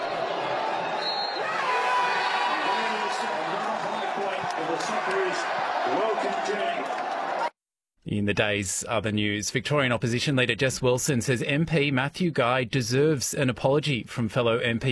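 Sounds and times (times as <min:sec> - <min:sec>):
scattered shouts: 0:00.0 - 0:07.5
large crowd roaring and cheering at end of match: 0:00.0 - 0:07.6
whistles: 0:01.0 - 0:01.6
speech: 0:05.1 - 0:07.0, 0:08.1 - 0:14.8.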